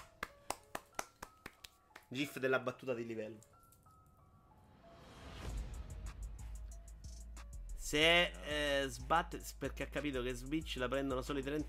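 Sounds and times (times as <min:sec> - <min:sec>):
applause, hand clapping: 0:00.0 - 0:02.3
speech: 0:02.1 - 0:03.6, 0:07.9 - 0:11.6.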